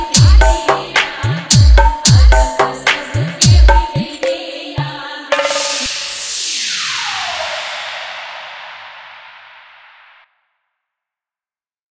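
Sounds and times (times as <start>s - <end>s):
Chhath Pooja song hip-hop remix: 0.0s - 9.4s.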